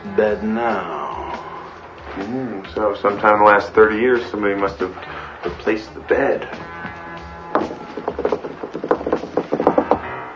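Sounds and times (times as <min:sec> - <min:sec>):
speech: 0:00.2 - 0:01.0, 0:02.2 - 0:06.7
knocking on an old water pipe: 0:07.5 - 0:10.0.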